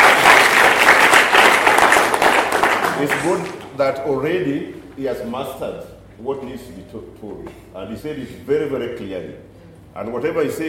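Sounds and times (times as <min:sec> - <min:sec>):
audience applause for two speakers at a gathering: 0:00.0 - 0:03.7
speech: 0:03.0 - 0:10.6.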